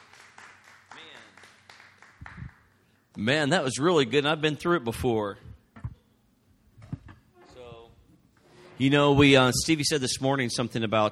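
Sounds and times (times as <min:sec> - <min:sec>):
audience clapping in a steady rhythm: 0:00.0 - 0:03.0
speech: 0:03.2 - 0:05.5, 0:08.8 - 0:11.1.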